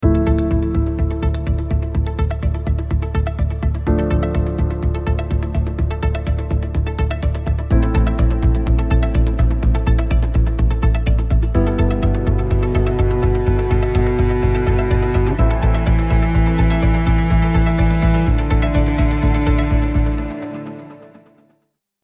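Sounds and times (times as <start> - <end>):
music: 0.0 - 21.8.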